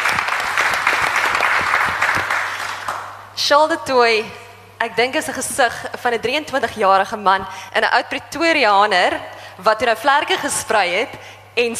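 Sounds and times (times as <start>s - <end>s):
audience applause: 0.0s - 3.1s
speech: 3.4s - 11.7s.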